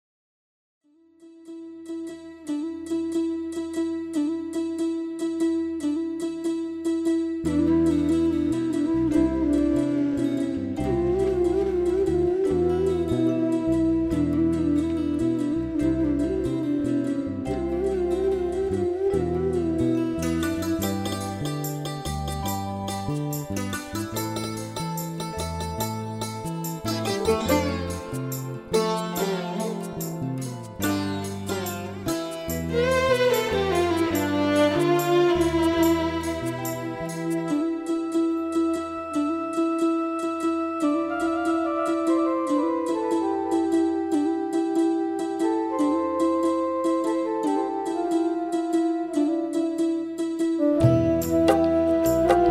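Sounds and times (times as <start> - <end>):
instrumental music: 0.8 - 52.4.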